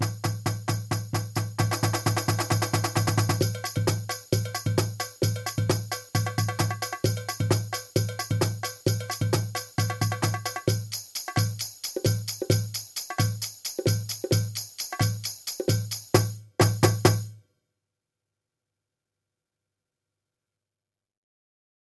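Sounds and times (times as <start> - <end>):
swing drums: 0.0 - 17.3.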